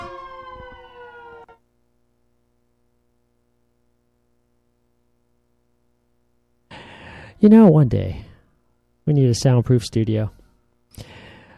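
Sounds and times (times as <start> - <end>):
L.A. City Fire engine siren passing outside: 0.0 - 1.6
speech: 7.4 - 8.3, 9.1 - 10.4.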